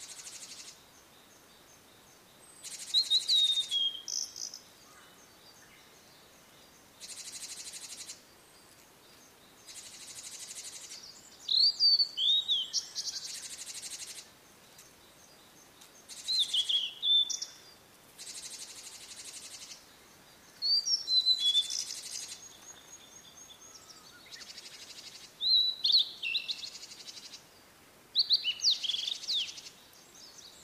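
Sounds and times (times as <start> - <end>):
Blue-and-white flycatcher whistling song: 2.6 - 4.6, 10.8 - 13.5, 16.2 - 17.7, 20.6 - 26.8, 28.2 - 29.7.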